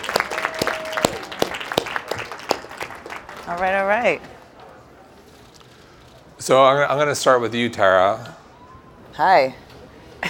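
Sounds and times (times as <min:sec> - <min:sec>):
audience applause: 0:00.0 - 0:04.2
speech: 0:03.5 - 0:04.4, 0:06.4 - 0:08.4, 0:09.2 - 0:09.6.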